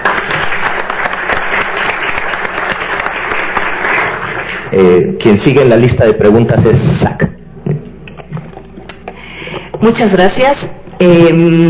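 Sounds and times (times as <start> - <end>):
audience applause: 0.0 - 4.7
speech: 4.8 - 7.4, 9.8 - 11.6.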